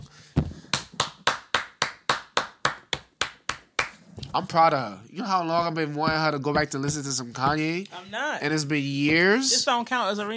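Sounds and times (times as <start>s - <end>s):
hands clapping: 0.6s - 4.0s
speech: 4.4s - 10.3s.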